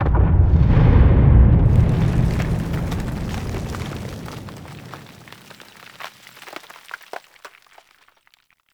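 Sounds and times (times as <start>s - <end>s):
battle ambient tunnel rumble: 0.0s - 5.5s.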